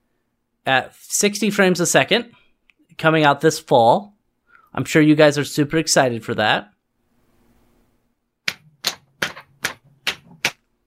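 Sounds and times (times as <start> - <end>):
speech: 0.7 - 2.4, 3.0 - 4.1, 4.7 - 6.7
hands slapping sides of body: 8.5 - 10.6.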